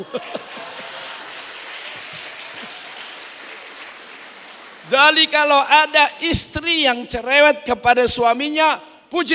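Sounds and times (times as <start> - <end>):
speech: 0.0 - 0.4, 4.9 - 9.3
laughter: 0.0 - 2.9
audience clapping: 0.0 - 5.6.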